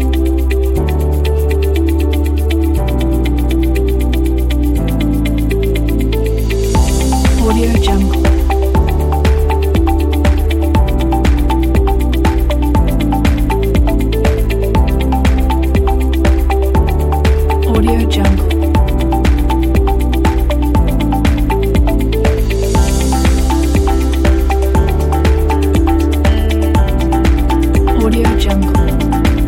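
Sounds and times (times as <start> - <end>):
inspiring upbeat corporate music: 0.0 - 29.4.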